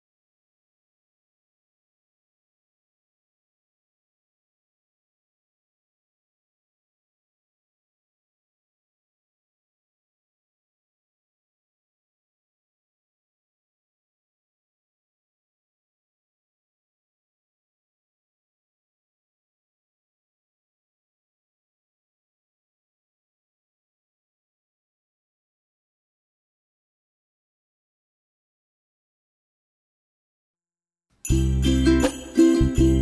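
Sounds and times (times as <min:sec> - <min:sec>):
ukulele Christmas tune: 0:31.2 - 0:32.9.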